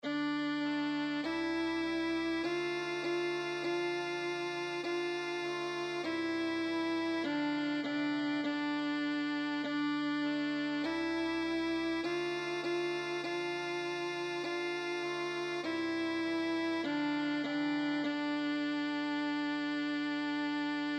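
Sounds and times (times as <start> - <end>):
violin: 0.0 - 20.9.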